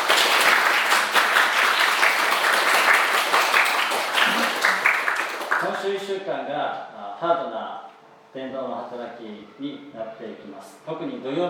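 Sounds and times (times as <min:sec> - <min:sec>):
audience applauding: 0:00.0 - 0:05.9
speech: 0:06.2 - 0:11.4.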